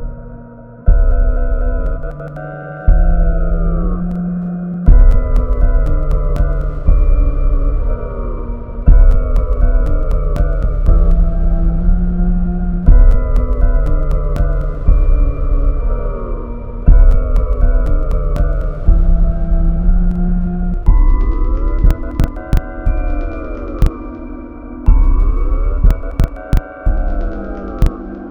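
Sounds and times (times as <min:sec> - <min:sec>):
1K tone: 0:00.9 - 0:28.2.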